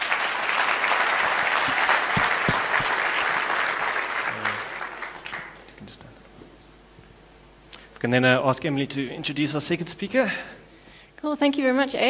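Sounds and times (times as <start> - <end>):
audience applause: 0.0 - 5.7
speech: 8.0 - 10.6, 11.2 - 12.0.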